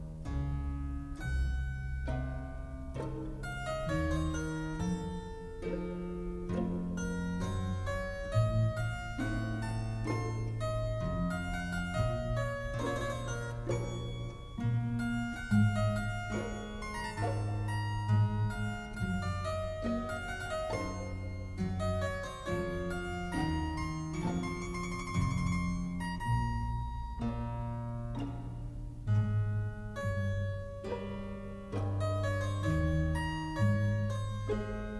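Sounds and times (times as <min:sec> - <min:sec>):
harpsichord concerto in F minor: 0:00.0 - 0:34.9.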